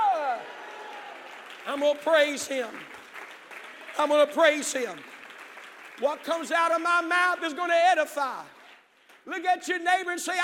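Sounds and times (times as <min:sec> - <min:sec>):
audience clapping: 0:00.0 - 0:09.6
speech: 0:01.7 - 0:03.0, 0:04.0 - 0:05.1, 0:06.0 - 0:08.6, 0:09.2 - 0:10.4.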